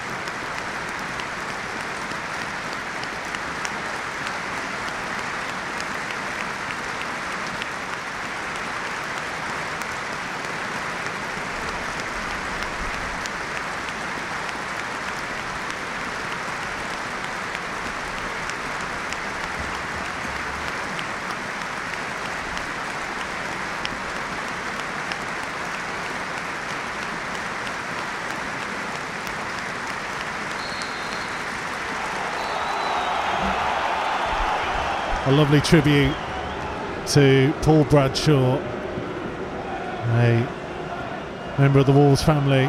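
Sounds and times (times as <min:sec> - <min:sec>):
stadium crowd minute of applause: 0:00.0 - 0:42.6
speech: 0:35.3 - 0:36.2, 0:37.1 - 0:38.7, 0:40.2 - 0:40.6, 0:41.6 - 0:42.6.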